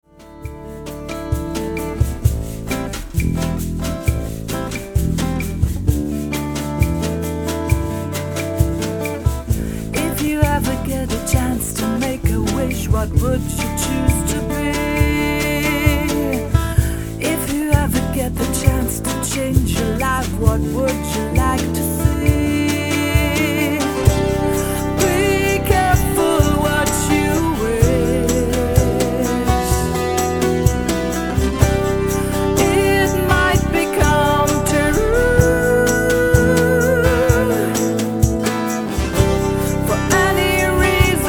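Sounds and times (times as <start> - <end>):
chill electroacoustic music: 0.0 - 41.2.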